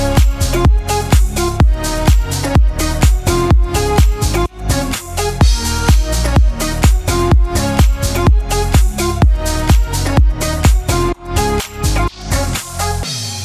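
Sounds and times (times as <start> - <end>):
Irish folk house music bed in D sharp minor: 0.0 - 13.0.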